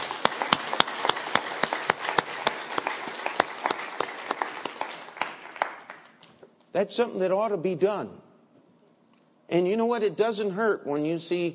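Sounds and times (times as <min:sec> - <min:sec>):
church congregation clapping hands in appreciation: 0:00.0 - 0:06.5
speech: 0:06.8 - 0:08.2, 0:09.5 - 0:11.5.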